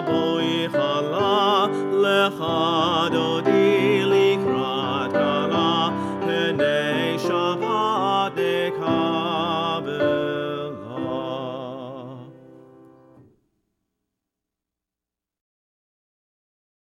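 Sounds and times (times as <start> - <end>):
cantor singing: 0.0 - 12.9.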